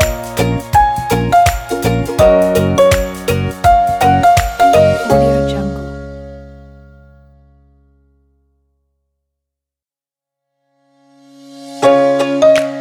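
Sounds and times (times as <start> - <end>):
acoustic inspiring music for kids: 0.0 - 8.2, 11.7 - 12.7.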